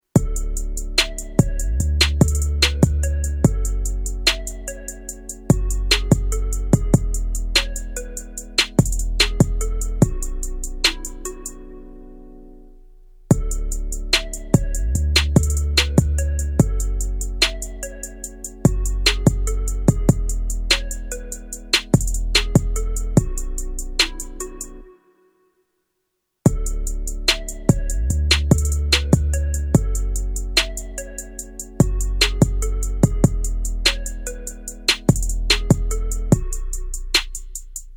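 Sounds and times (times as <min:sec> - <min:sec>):
instrumental music: 0:00.2 - 0:25.3, 0:26.5 - 0:37.9.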